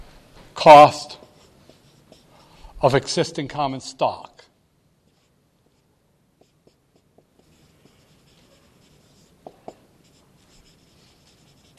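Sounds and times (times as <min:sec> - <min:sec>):
hiss: 0:00.0 - 0:11.7
speech: 0:00.6 - 0:01.2, 0:02.8 - 0:04.4
marker strokes on a lecture board: 0:01.2 - 0:02.6, 0:05.1 - 0:11.7.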